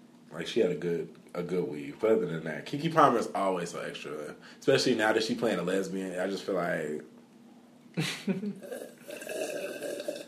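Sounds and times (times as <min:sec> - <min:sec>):
speech: 0:00.4 - 0:07.1, 0:08.0 - 0:09.4
person slurping tea: 0:08.6 - 0:10.2.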